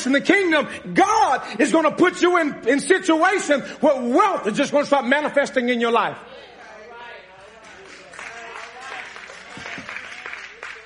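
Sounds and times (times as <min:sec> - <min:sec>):
speech: 0:00.0 - 0:06.5
few people clapping: 0:07.5 - 0:10.8.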